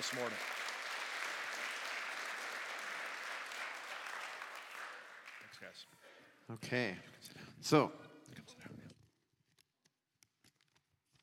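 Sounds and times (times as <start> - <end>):
speech: 0.0 - 0.6, 5.5 - 8.8
warm applause from audience: 0.0 - 5.8.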